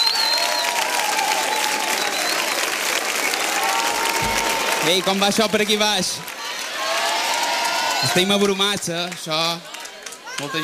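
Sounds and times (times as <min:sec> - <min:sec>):
audience applause: 0:00.0 - 0:10.6
speech: 0:04.8 - 0:06.3, 0:08.0 - 0:09.7, 0:10.4 - 0:10.6.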